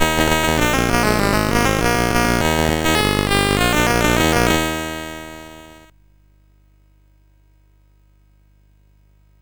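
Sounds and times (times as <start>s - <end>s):
chiptune music on CSG8580R5 SID chip: 0.0s - 5.9s.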